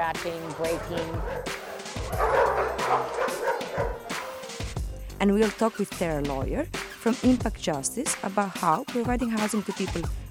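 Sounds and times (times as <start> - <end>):
speech: 0.0 - 4.0, 5.2 - 10.2
dogs barking in shelter kennels: 0.1 - 4.8
high-pitched dog yelps: 0.8 - 4.4.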